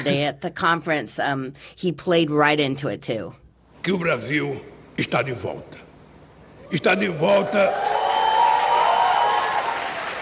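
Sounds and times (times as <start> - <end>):
speech: 0.0 - 5.8, 6.7 - 8.0
conference audience applause: 6.9 - 10.2.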